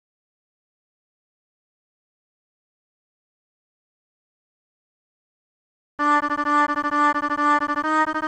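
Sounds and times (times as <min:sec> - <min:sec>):
three-oscillator synthesizer tone: 0:06.0 - 0:08.2.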